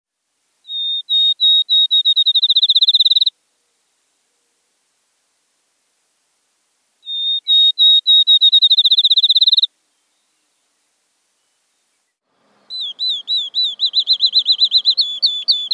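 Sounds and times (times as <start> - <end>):
field sparrow song of whistled notes and trill: 0.7 - 3.3, 7.0 - 10.4, 12.7 - 15.7.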